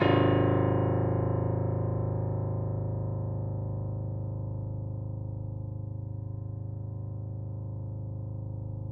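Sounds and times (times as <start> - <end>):
piano: 0.0 - 8.9.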